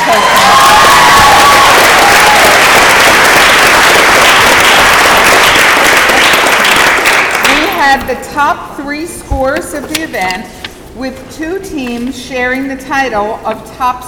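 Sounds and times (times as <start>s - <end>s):
audience applause: 0.0s - 7.6s
speech: 8.4s - 14.0s.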